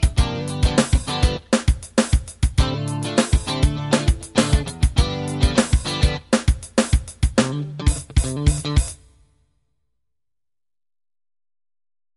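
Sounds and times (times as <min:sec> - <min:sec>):
Dorian D minor backing track on electric guitar: 0:00.0 - 0:09.1.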